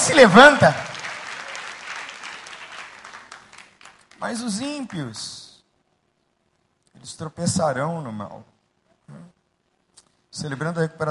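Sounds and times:
audience applauding: 0.0s - 5.0s
speech: 0.1s - 0.9s, 4.2s - 5.4s, 7.0s - 8.5s, 9.1s - 9.4s, 10.4s - 11.0s.

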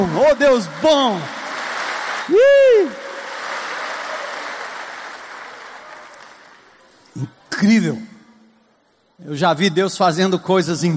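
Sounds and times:
speech: 0.0s - 1.4s, 2.3s - 3.0s, 7.2s - 8.1s, 9.2s - 10.9s
crowd applauding: 0.0s - 6.8s.

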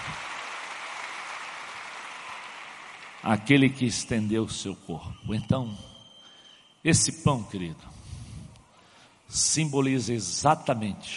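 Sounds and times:
audience applauding: 0.0s - 4.3s
speech: 3.2s - 5.9s, 6.8s - 8.0s, 9.3s - 11.1s.

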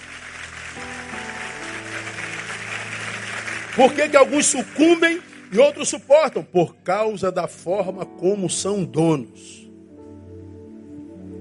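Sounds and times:
audience applauding: 0.0s - 6.6s
sustained keyboard chords: 0.0s - 11.3s
speech: 3.8s - 9.6s.

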